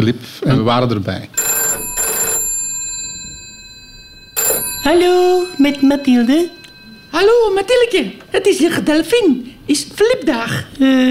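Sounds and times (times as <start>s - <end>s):
speech: 0.0s - 1.5s, 4.8s - 11.0s
telephone ringing with bright buzzy trills: 1.4s - 9.2s.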